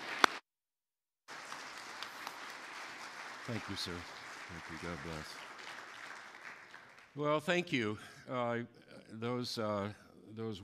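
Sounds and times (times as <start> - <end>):
crowd clapping to welcome a speaker at a CFC event: 0.0 - 0.4, 1.3 - 7.8
speech: 3.5 - 5.5, 7.2 - 10.6.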